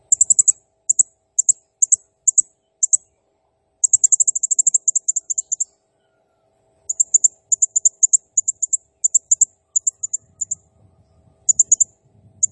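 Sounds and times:
blue-crowned hanging parrot chirping: 0:00.1 - 0:03.0, 0:03.9 - 0:05.7, 0:06.9 - 0:10.5, 0:11.5 - 0:12.5.

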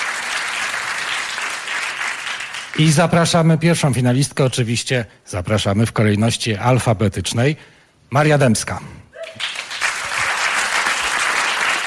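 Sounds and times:
audience applause: 0:00.0 - 0:02.8, 0:09.2 - 0:11.8
speech: 0:02.8 - 0:09.4.

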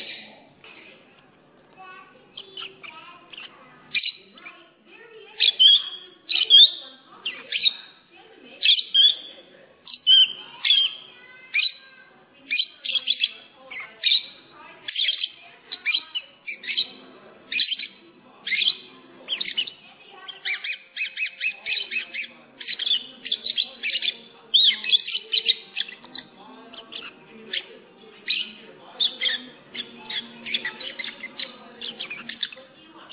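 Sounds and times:
lovebird chirping: 0:02.3 - 0:11.8, 0:12.5 - 0:33.1.

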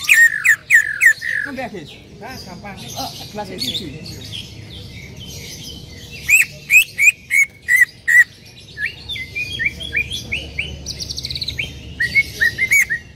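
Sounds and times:
bird song of whistled notes, chirps and buzzy bursts: 0:00.0 - 0:13.1.

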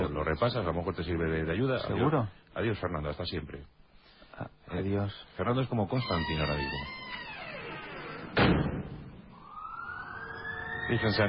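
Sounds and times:
speech: 0:00.2 - 0:03.8, 0:04.4 - 0:07.0, 0:10.9 - 0:11.2
ambulance siren: 0:09.3 - 0:11.2.

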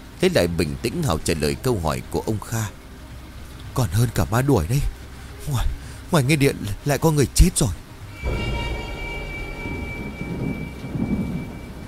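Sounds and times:
speech: 0:00.2 - 0:02.8, 0:03.8 - 0:08.5
faint steady tones: 0:08.0 - 0:11.8
deep rolling thunder: 0:08.2 - 0:11.8.

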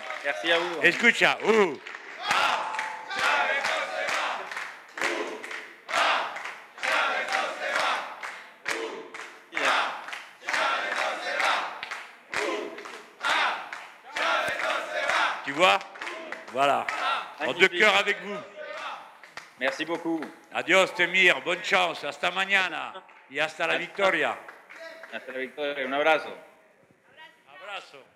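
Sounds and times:
crowd clapping: 0:00.0 - 0:20.3, 0:22.9 - 0:25.5
speech: 0:00.2 - 0:01.9, 0:16.6 - 0:18.6, 0:19.6 - 0:24.5, 0:25.1 - 0:26.5
crowd cheering and shouting in rhythmic bursts: 0:02.1 - 0:17.4.

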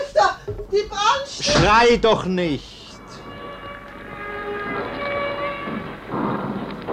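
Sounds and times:
speech: 0:00.7 - 0:02.7
siren wailing: 0:02.9 - 0:06.8.

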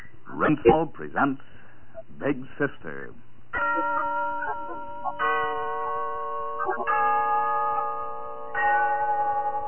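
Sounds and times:
speech: 0:00.4 - 0:01.5, 0:02.2 - 0:04.0
town hall clock chiming: 0:03.5 - 0:09.6.

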